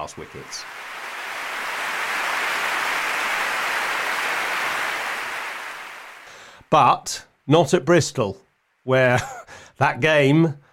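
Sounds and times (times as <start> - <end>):
speech: 0.0 - 0.8, 6.7 - 10.6
round of applause: 0.0 - 6.5.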